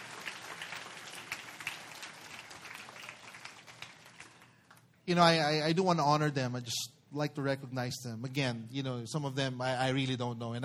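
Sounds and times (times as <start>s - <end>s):
audience applause for volunteers: 0.0s - 4.8s
speech: 5.1s - 10.6s.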